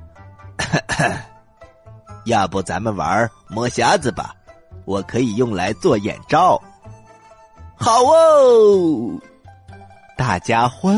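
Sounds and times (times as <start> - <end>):
awkward coughs: 0.6 - 1.3
speech: 0.7 - 1.3, 2.3 - 6.7, 7.8 - 9.3, 10.2 - 10.9.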